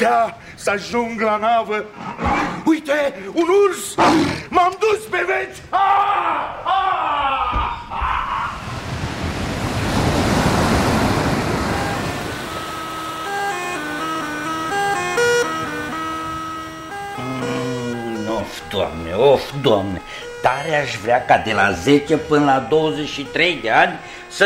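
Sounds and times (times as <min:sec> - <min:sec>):
speech: 0:00.0 - 0:07.6, 0:18.4 - 0:24.4
roaring storm wind: 0:07.5 - 0:14.1
crashing sea waves: 0:08.2 - 0:18.0
sustained musical tones: 0:10.6 - 0:24.4.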